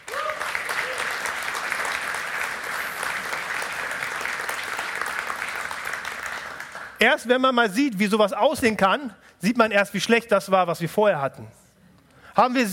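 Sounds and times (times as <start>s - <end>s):
applause: 0.0s - 7.2s
speech: 7.0s - 11.6s, 12.4s - 12.7s.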